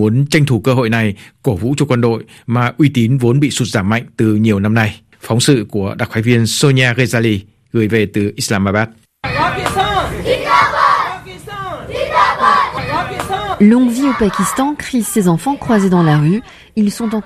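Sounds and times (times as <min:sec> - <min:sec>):
speech: 0:00.0 - 0:10.4, 0:13.6 - 0:17.2
children shouting patriotic chants in the street: 0:09.2 - 0:17.2.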